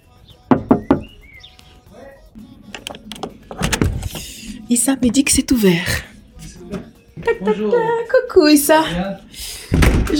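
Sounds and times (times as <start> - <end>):
knocking on a door: 0.5 - 1.1
speech: 4.7 - 6.1, 7.2 - 9.3
laughter: 7.2 - 8.2.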